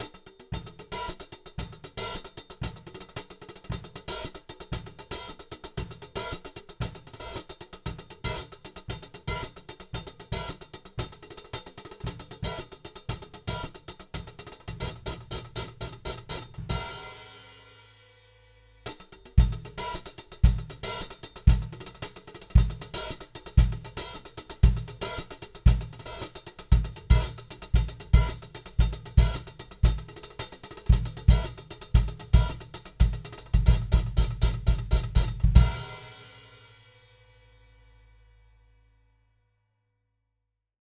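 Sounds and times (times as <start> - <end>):
hi-hat: 0.0 - 37.0.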